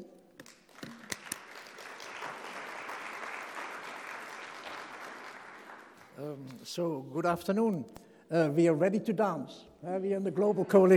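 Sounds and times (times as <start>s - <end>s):
audience applause: 0.5s - 6.2s
speech: 6.2s - 10.9s.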